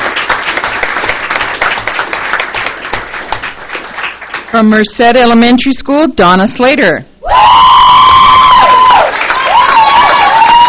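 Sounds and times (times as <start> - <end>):
audience applause: 0.0 - 4.5, 8.0 - 10.6
speech: 4.6 - 7.7.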